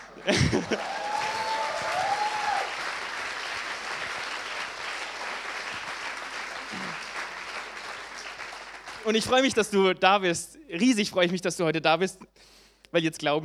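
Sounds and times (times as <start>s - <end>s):
laughter: 0.0s - 1.5s
audience clapping: 0.0s - 9.6s
speech: 0.2s - 1.0s, 9.0s - 13.4s.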